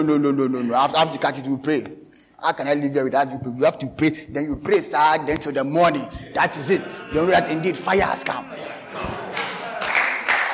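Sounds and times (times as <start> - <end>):
speech: 0.0 - 9.2
laughter: 5.5 - 10.5
audience clapping: 9.1 - 10.5.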